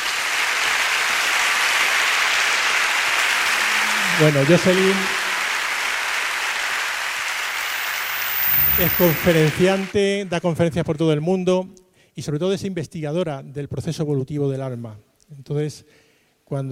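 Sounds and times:
audience applause: 0.0 - 10.2
speech: 4.2 - 5.2, 8.8 - 16.7.

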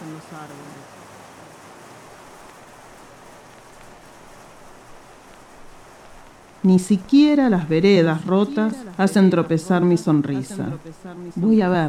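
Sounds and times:
steady rain pouring down: 0.0 - 11.8
speech: 6.6 - 11.8
voice murmuring: 6.7 - 11.8.

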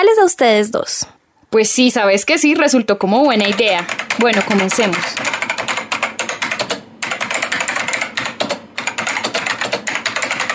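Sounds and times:
speech: 0.0 - 5.4
rapid typing on a computer keyboard: 3.2 - 10.5.

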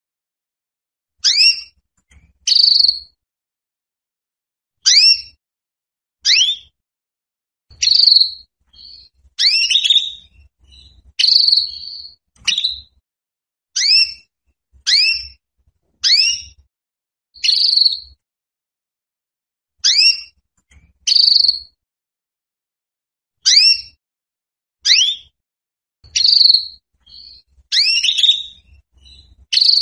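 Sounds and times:
female Belgian canary calling for mating: 1.2 - 1.8, 2.4 - 3.2, 4.8 - 5.4, 6.2 - 6.8, 7.7 - 13.0, 13.8 - 14.3, 14.9 - 15.4, 16.0 - 16.6, 17.4 - 18.2, 19.8 - 20.4, 21.1 - 21.8, 23.4 - 24.0, 24.8 - 25.4, 26.0 - 29.8.

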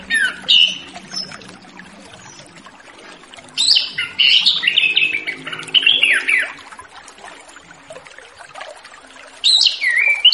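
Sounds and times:
Orange-headed thrush singing whistled and warbled notes: 0.0 - 6.9, 9.4 - 10.3.

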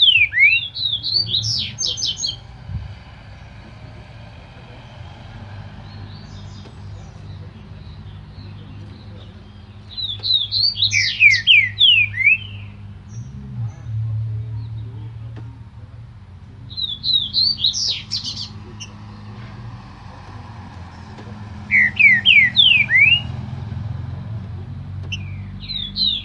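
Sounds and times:
green-winged saltator singing slurred whistles: 0.0 - 2.4, 9.9 - 13.2, 16.7 - 18.5, 21.7 - 23.4, 25.1 - 26.2.

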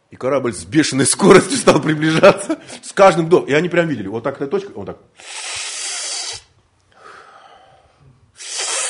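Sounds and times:
speech: 0.2 - 5.6
person sharply sucking air in through the mouth: 5.2 - 8.8.

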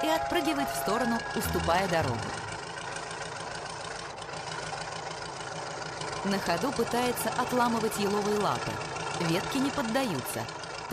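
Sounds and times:
speech: 0.0 - 2.5, 6.2 - 10.9
tractor engine running while pulling felled trees: 0.0 - 10.9.

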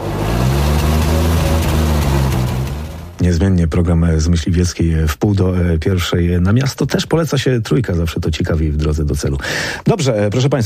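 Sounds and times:
car engine driving off: 0.0 - 3.4
speech: 3.2 - 10.6.

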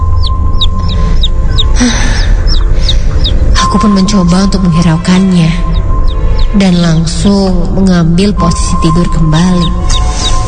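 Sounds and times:
baby chick cheeping: 0.0 - 3.6, 5.5 - 6.6, 8.9 - 10.4
steady low rumble: 0.0 - 10.4
speech: 1.8 - 2.2, 3.7 - 5.7, 6.5 - 10.3.

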